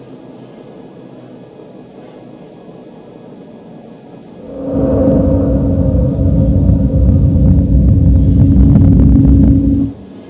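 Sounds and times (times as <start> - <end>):
drone: 4.4 - 10.2.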